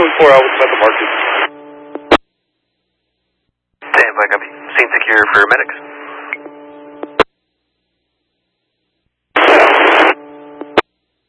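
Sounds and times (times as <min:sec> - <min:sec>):
radio static: 0:00.0 - 0:02.2, 0:03.8 - 0:07.3, 0:09.4 - 0:10.9
speech: 0:00.1 - 0:01.6, 0:04.2 - 0:06.0.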